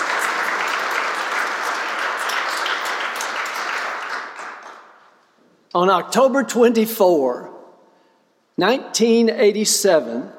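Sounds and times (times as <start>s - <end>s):
audience applause: 0.0s - 4.9s
speech: 5.8s - 7.5s, 8.6s - 10.3s.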